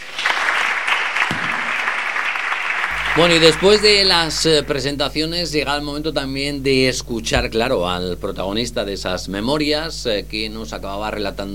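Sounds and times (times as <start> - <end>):
applause: 0.0 - 4.8
speech: 3.2 - 11.5.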